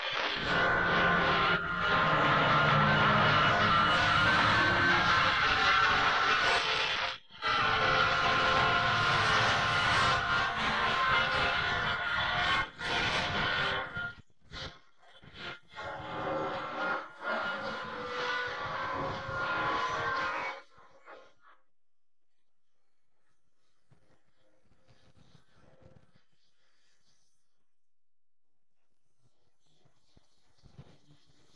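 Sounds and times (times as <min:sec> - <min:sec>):
guitar: 0:00.0 - 0:14.7, 0:15.3 - 0:21.2.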